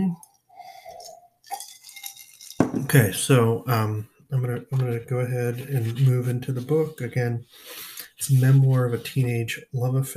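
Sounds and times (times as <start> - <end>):
slurping sip of a drink: 0.6 - 2.4
speech: 2.9 - 10.1.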